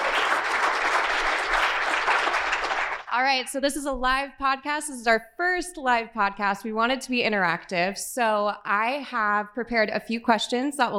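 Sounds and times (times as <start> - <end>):
audience applause: 0.0 - 3.1
speech: 3.2 - 10.9.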